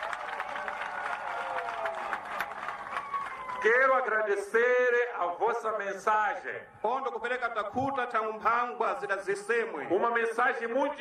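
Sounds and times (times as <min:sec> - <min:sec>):
audience applause: 0:00.0 - 0:04.0
speech: 0:03.6 - 0:10.9.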